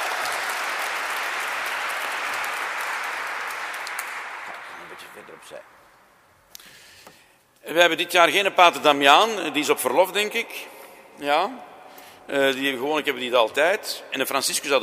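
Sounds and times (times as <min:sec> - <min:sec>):
audience applause: 0:00.0 - 0:05.9
speech: 0:05.0 - 0:05.9, 0:07.6 - 0:11.7, 0:12.3 - 0:14.8.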